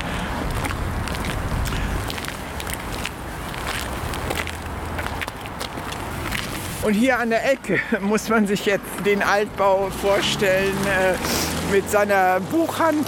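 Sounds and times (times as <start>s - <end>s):
continuous noise: 0.0s - 13.0s
soft scuffing footsteps of people walking along a street: 0.5s - 6.8s
speech: 6.8s - 13.0s.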